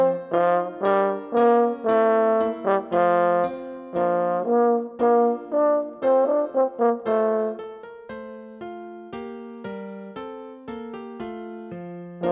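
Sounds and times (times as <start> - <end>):
French horn solo: 0.0 - 7.6.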